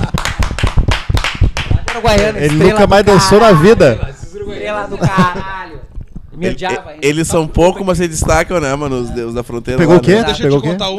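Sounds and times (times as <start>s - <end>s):
hands clapping: 0.0s - 3.2s
speech: 2.0s - 10.9s.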